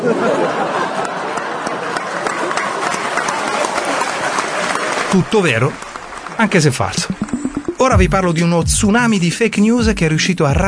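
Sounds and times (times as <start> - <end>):
laughter: 0.0 - 2.9
speech: 0.1 - 0.8, 5.1 - 10.6
audience applause: 0.6 - 8.0.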